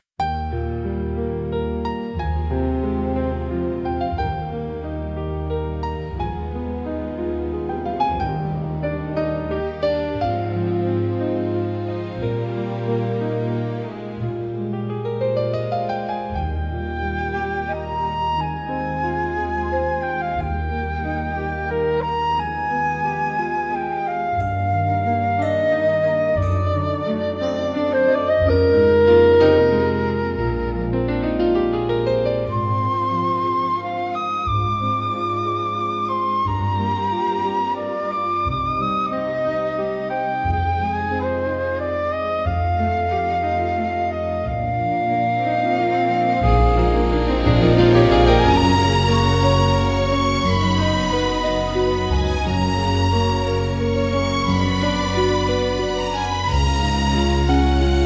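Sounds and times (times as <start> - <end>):
cute bright fantasy waltz music: 0.2 - 58.0.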